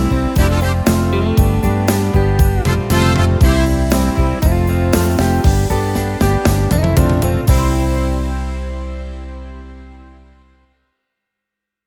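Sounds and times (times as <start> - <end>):
beat: 0.0 - 9.0.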